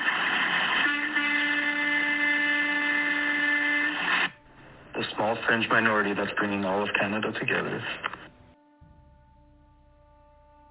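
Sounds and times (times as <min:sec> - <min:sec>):
truck horn from the trucker convoy passing through Sturgeon Falls, Canada: 0:00.8 - 0:03.9
noisy background: 0:03.8 - 0:10.6
speech: 0:05.2 - 0:08.1.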